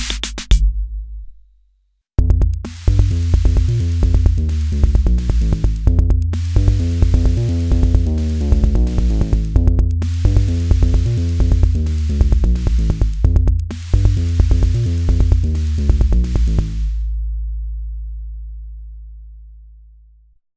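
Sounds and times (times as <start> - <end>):
Akai Rhythm Wolf drum machine beats: 0.0 - 1.4, 2.2 - 17.1
Akai Rhythm Wolf bass: 2.2 - 19.6.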